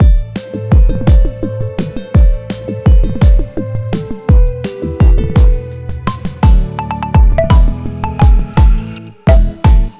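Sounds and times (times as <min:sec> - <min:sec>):
jingle: 0:00.0 - 0:09.9.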